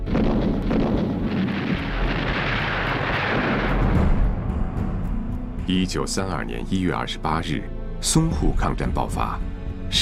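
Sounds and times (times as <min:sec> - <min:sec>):
gunfire: 0:00.0 - 0:04.3
artillery explosions: 0:00.0 - 0:04.7
speech: 0:05.7 - 0:10.0.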